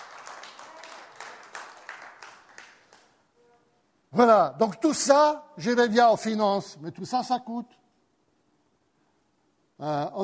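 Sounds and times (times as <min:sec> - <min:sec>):
audience applauding: 0:00.0 - 0:03.2
speech: 0:04.1 - 0:07.8, 0:09.8 - 0:10.2.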